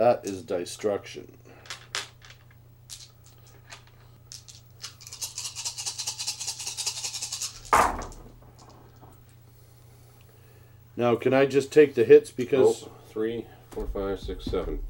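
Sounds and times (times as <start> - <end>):
speech: 0.0 - 1.6, 11.0 - 14.8
handful of dice clattering: 1.7 - 3.4, 4.3 - 8.8.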